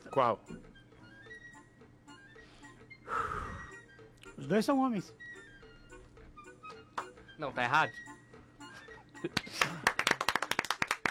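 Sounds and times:
speech: 0:00.2 - 0:00.7, 0:04.4 - 0:05.3, 0:07.4 - 0:08.1, 0:09.2 - 0:09.9
hand clapping: 0:09.3 - 0:11.0.

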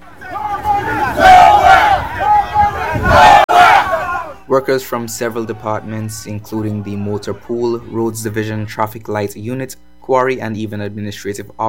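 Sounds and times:
protesters shouting and chanting outside parliament: 0:00.0 - 0:09.0
speech: 0:04.6 - 0:11.6.

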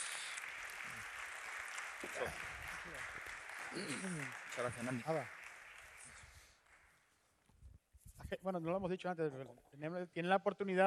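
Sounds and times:
audience applause: 0:00.0 - 0:07.0
speech: 0:02.0 - 0:05.4, 0:08.3 - 0:10.8.

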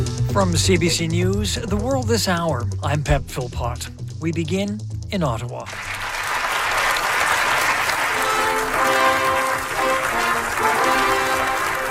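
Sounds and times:
speech: 0:00.4 - 0:06.1
applause at a ceremony: 0:05.7 - 0:11.9
fanfare at a ceremony: 0:06.9 - 0:11.9.

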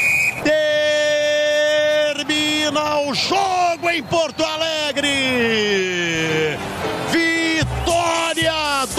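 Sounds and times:
referee's final whistle ending a football match between Grêmio and Corinthians in Porto Alegre: 0:00.0 - 0:01.5, 0:03.4 - 0:05.3, 0:07.4 - 0:08.8
speech: 0:02.7 - 0:07.3.

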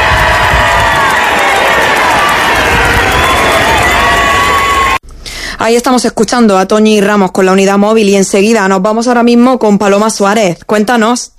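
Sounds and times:
crowd cheering in packed Plaza de España: 0:00.0 - 0:05.0
speech: 0:05.6 - 0:11.3.

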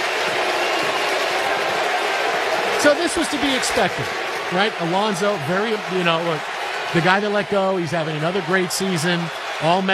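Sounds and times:
stadium crowd cheering: 0:00.0 - 0:09.9
speech: 0:02.8 - 0:09.9.

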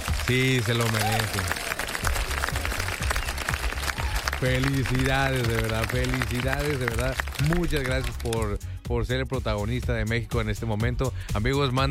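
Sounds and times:
applause: 0:00.0 - 0:08.6
speech: 0:00.3 - 0:01.7, 0:04.4 - 0:11.9.

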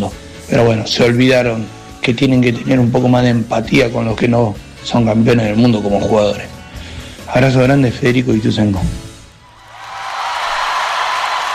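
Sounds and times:
speech: 0:00.0 - 0:06.5, 0:07.3 - 0:09.0
applause: 0:09.6 - 0:11.5.

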